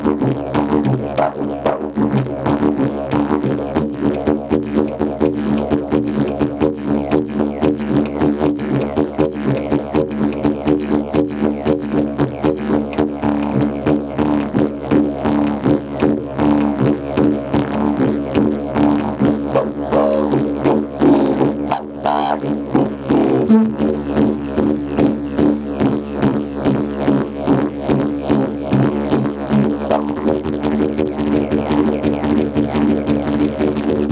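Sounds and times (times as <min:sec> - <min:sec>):
didgeridoo solo: 0:00.0 - 0:34.1.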